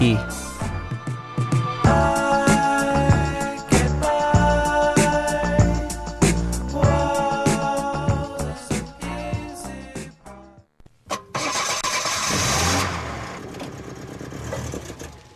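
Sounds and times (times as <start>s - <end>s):
music: 0.0s - 10.7s
old car engine cranking and starting: 11.1s - 15.3s.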